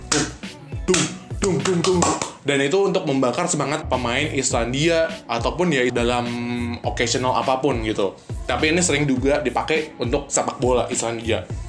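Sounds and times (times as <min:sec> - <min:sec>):
rhythmic clapping: 0:00.0 - 0:02.4
person's voice: 0:00.0 - 0:11.5
speech: 0:00.9 - 0:11.6.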